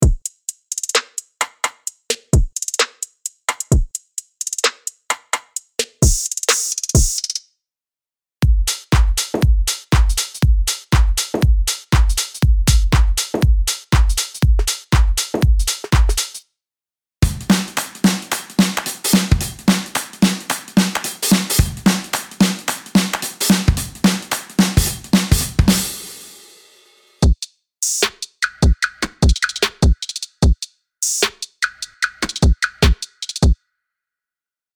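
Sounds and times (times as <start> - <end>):
drum kit: 0.0 - 7.4, 8.4 - 16.4, 17.2 - 33.6.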